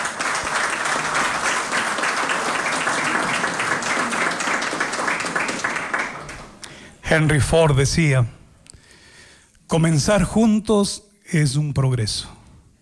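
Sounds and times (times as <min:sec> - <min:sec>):
crowd applauding: 0:00.0 - 0:07.0
speech: 0:07.1 - 0:08.4, 0:09.7 - 0:12.4.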